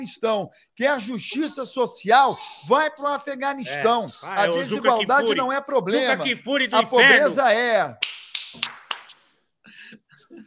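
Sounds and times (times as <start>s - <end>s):
speech: 0.0s - 8.8s
person clapping hands: 8.0s - 9.4s.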